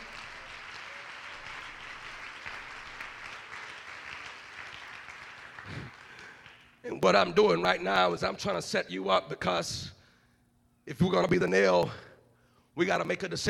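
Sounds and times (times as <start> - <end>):
audience clapping hands: 0.0 - 7.2
speech: 6.8 - 10.0, 10.9 - 12.1, 12.8 - 13.4.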